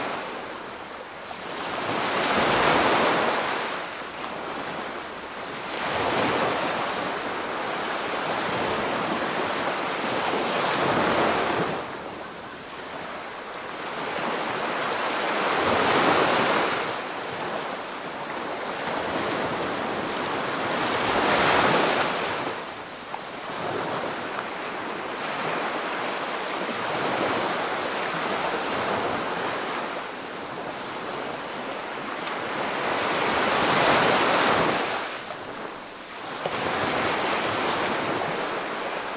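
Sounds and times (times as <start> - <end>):
medium waves in the ocean: 0.0 - 39.1.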